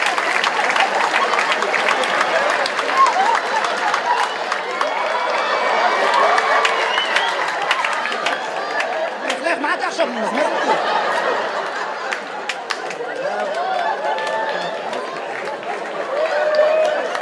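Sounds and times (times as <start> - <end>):
crowd applauding: 0.0 - 17.1
laughter: 0.0 - 17.1
cheers and scattered whoops: 0.6 - 9.2, 13.1 - 15.3, 16.0 - 17.1.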